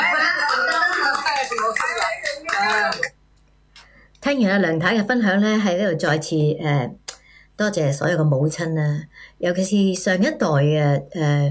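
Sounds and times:
audience applause: 0.0 - 3.1
speech: 4.3 - 7.0, 7.6 - 11.4.

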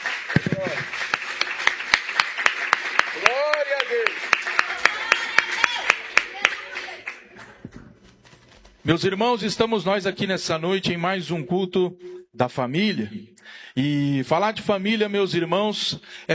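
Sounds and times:
audience clapping: 0.0 - 8.6
speech: 8.9 - 16.3.

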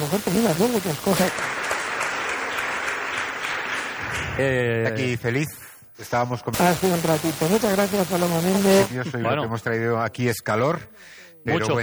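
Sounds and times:
audience applauding a guest in Valderrobres Spain: 0.0 - 4.2
speech: 0.1 - 1.6, 4.4 - 11.8.

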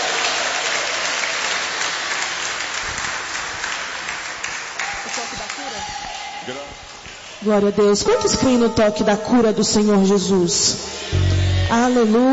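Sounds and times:
audience clapping: 0.0 - 7.4
speech: 6.5 - 6.7, 7.4 - 12.3.

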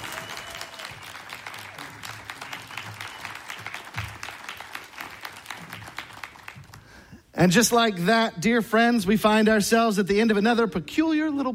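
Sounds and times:
audience applause: 0.0 - 7.0
speech: 7.4 - 11.5.

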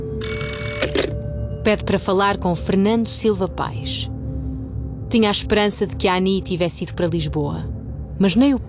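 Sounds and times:
telephone ringing: 0.2 - 1.3
speech: 1.7 - 4.1, 5.1 - 8.6.

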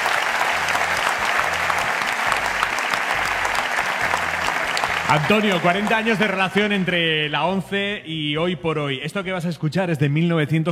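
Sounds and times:
audience applause: 0.0 - 7.1
speech: 5.1 - 10.7.

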